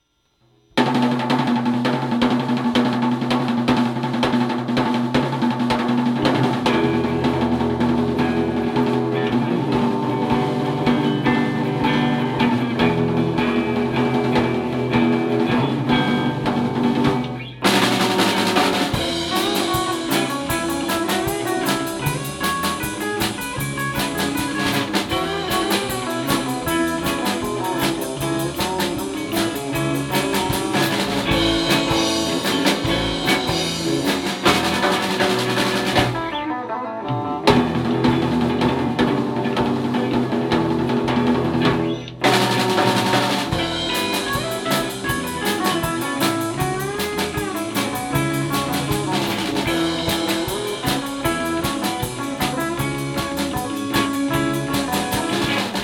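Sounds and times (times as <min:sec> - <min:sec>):
driving guitars: 0:00.8 - 0:55.8.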